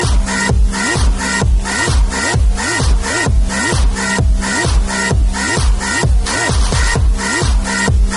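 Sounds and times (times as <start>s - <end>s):
hip hop beat: 0.0s - 8.1s.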